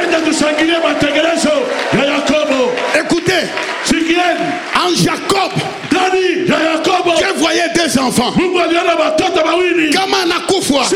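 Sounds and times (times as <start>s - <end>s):
church congregation shouting and cheering in acclaim: 0.0s - 10.9s
speech: 0.4s - 1.1s, 7.8s - 10.9s.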